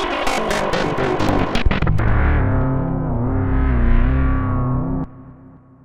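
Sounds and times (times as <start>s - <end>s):
Roland JP-8000 synthesizer Chaos Lead factory patch: 0.1s - 5.7s.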